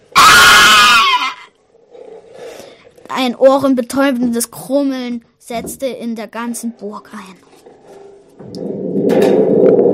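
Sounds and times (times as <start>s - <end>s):
dragon's bloodcurdling scream: 0.1s - 1.6s
speech: 3.1s - 7.5s, 8.5s - 9.4s.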